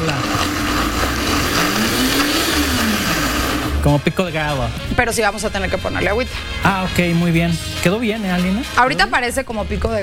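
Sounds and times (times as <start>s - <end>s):
blender blending salsa: 0.0s - 4.6s
speech: 3.8s - 10.0s.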